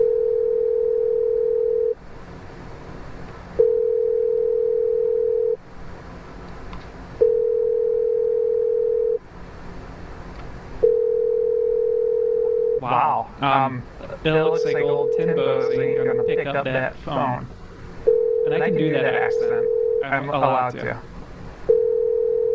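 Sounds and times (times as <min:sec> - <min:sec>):
phone ringback tone while a call to a Tim Hortons connects: 0:00.0 - 0:02.0, 0:03.6 - 0:05.6, 0:07.2 - 0:09.2, 0:10.8 - 0:12.8, 0:14.5 - 0:16.4, 0:18.1 - 0:20.1, 0:21.7 - 0:22.5
people talking: 0:12.8 - 0:17.5, 0:18.5 - 0:21.0.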